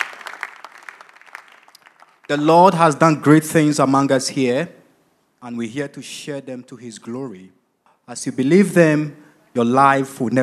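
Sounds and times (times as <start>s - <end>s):
audience applause: 0.0s - 2.4s
speech: 2.3s - 4.8s, 5.4s - 10.4s.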